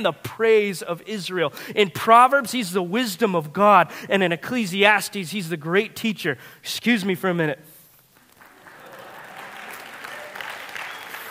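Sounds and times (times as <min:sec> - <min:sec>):
speech: 0:00.0 - 0:07.7
audience clapping: 0:08.1 - 0:11.2.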